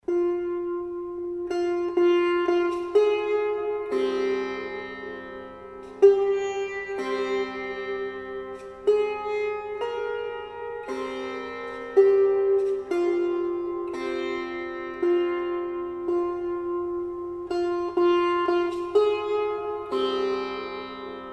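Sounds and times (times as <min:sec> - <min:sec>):
sitar: 0:00.0 - 0:21.3.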